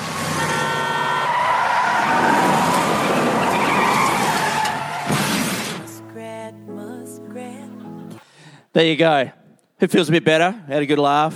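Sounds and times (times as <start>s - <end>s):
skidding tires screeching in a car crash: 0.0s - 6.2s
speech: 8.8s - 11.3s.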